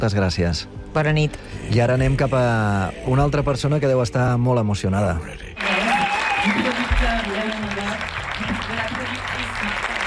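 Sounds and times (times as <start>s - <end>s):
speech: 0.0s - 5.4s
audience applause: 5.6s - 10.0s.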